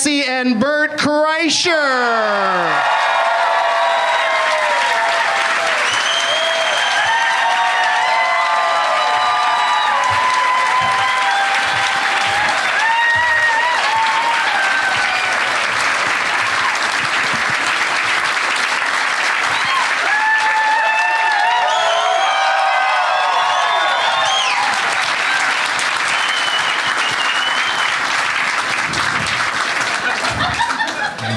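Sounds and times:
speech: 0.0 - 3.0
comedy show audience cheering and applauding: 1.8 - 31.3
audience whistles and shouts: 5.8 - 7.4, 21.6 - 24.8, 26.1 - 28.0
laughter: 29.8 - 31.3.

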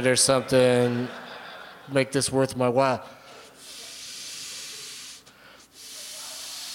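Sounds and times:
speech: 0.0 - 1.2, 1.9 - 3.2
laughter: 0.0 - 3.9
air hissing into a ball being inflated: 3.5 - 6.7.

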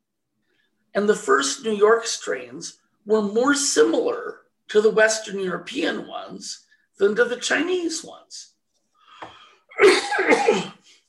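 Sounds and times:
speech: 1.0 - 8.5
breathy catch: 9.0 - 9.6
harsh allergic cough: 9.7 - 11.0.

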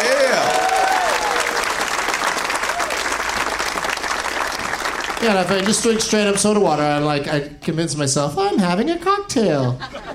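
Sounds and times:
crowd whooping and cheering: 0.0 - 4.5
audience applause for the staff: 0.0 - 6.9
speech: 5.2 - 10.1
laughter: 9.5 - 10.1.

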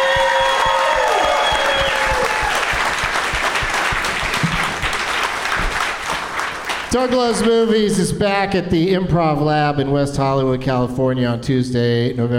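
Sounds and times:
audience applause: 0.0 - 7.5
speech: 6.9 - 12.3.

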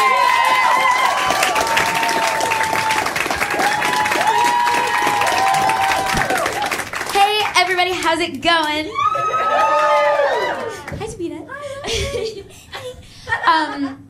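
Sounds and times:
crowd cheering and whooping: 0.0 - 7.0, 8.9 - 10.9
crowd clapping: 0.0 - 11.0
speech: 8.2 - 10.8, 13.5 - 14.0.

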